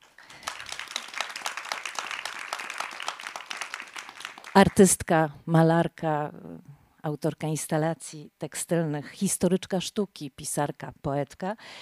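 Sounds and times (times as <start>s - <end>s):
audience applause: 0.0s - 4.9s
speech: 4.6s - 11.8s.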